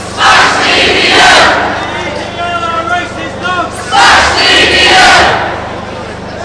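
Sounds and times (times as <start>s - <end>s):
people chanting: 0.1s - 1.9s, 3.8s - 5.6s.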